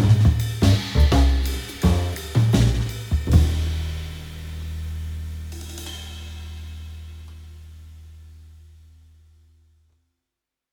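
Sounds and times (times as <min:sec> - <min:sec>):
piano: 0:00.0 - 0:03.7.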